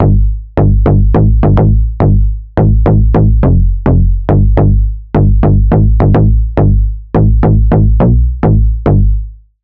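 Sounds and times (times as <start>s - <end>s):
bass: 0.0s - 9.6s.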